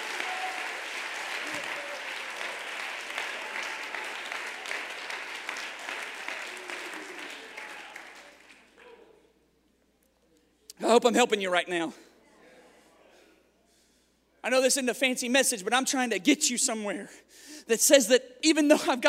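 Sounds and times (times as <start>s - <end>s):
audience applause: 0.0s - 9.1s
speech: 11.0s - 12.1s, 14.5s - 19.0s.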